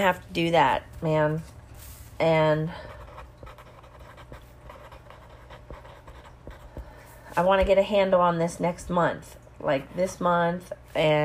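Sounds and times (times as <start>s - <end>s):
speech: 0.0s - 1.6s, 2.2s - 3.0s, 7.4s - 11.2s
low steady hum: 0.0s - 11.2s
pen scratching across paper: 2.7s - 7.8s.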